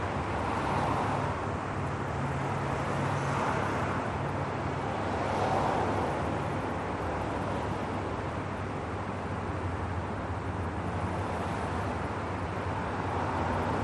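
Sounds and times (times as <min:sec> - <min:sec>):
city traffic: 0:00.0 - 0:13.8.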